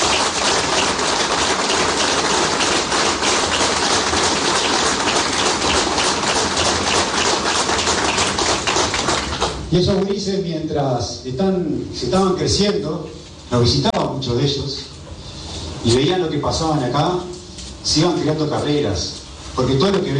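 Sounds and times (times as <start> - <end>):
crowd applauding: 0.0 - 9.7
speech: 9.7 - 14.9, 15.8 - 20.1.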